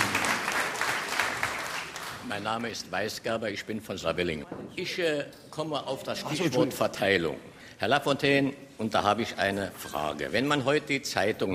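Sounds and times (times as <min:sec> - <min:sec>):
audience applause: 0:00.0 - 0:02.2
speech: 0:02.3 - 0:11.5.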